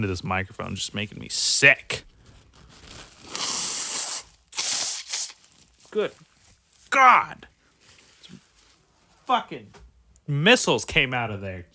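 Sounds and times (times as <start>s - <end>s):
speech: 0.0s - 2.1s, 6.0s - 6.3s, 6.9s - 7.5s, 9.3s - 11.7s
person blowing nose: 3.2s - 5.5s.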